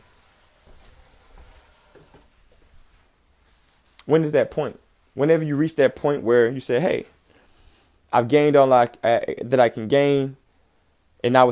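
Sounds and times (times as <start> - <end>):
running tap water: 0.0 - 2.2
speech: 4.1 - 7.2, 8.1 - 10.4, 11.2 - 11.5.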